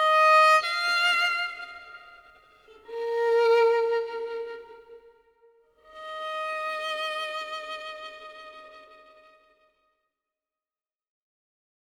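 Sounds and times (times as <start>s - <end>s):
expressive Jewish violin: 0.0s - 5.2s, 5.8s - 9.5s.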